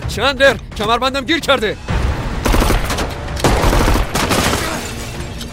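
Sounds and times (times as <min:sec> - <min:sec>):
speech: 0:00.1 - 0:01.9
automatic weapon gunfire outside Bank Melli: 0:02.5 - 0:04.7.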